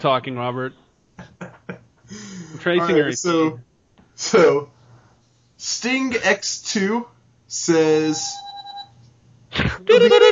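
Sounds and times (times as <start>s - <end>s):
speech: 0.0s - 1.3s, 2.6s - 4.8s, 5.6s - 8.4s
morse code beeps: 8.1s - 9.0s.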